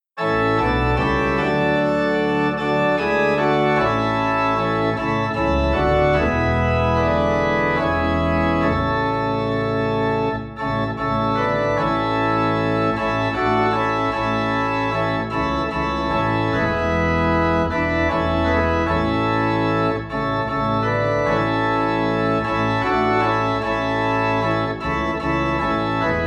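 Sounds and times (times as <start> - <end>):
low organ in A: 0.2 - 26.2.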